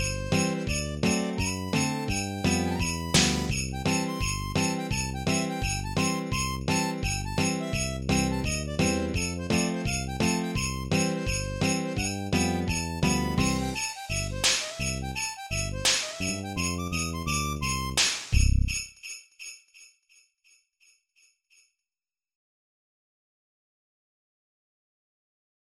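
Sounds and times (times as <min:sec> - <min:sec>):
Christmas song: 0:00.0 - 0:20.2.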